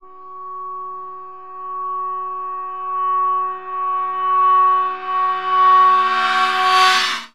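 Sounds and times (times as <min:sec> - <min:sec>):
reverberant percussion hit in F sharp: 0:03.4 - 0:07.3.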